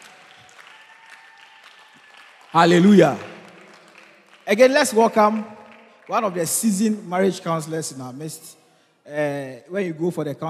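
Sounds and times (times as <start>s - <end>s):
audience clapping: 0.0s - 7.4s
speech: 2.5s - 3.3s, 4.5s - 10.4s.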